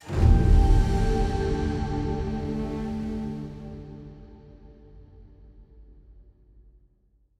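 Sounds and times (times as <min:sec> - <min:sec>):
music stinger: 0:00.0 - 0:04.8.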